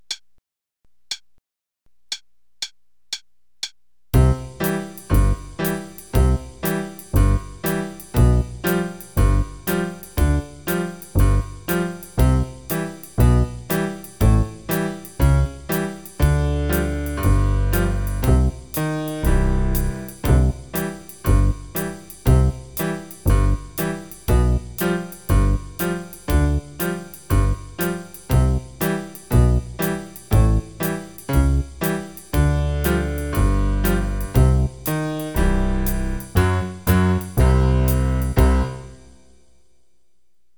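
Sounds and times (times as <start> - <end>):
drums: 4.2 - 39.0
bass: 4.2 - 39.1.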